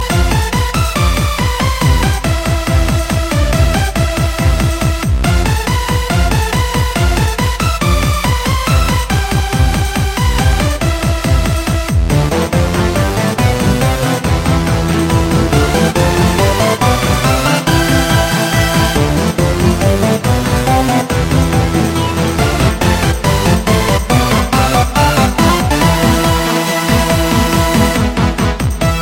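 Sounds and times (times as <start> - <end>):
techno music: 0.0 - 29.0.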